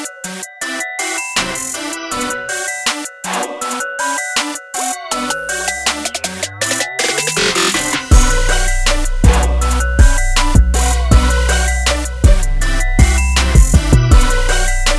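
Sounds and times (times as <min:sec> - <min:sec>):
drum kit beat: 0:01.4 - 0:02.0, 0:04.5 - 0:14.9.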